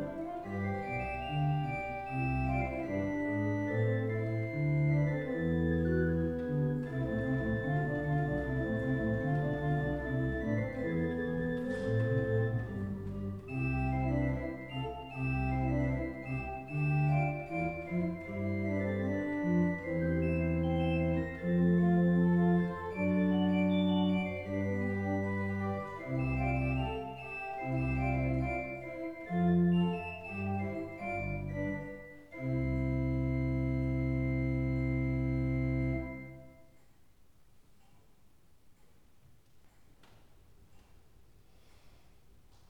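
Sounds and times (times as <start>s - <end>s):
organ trio in C major: 0.0s - 36.8s.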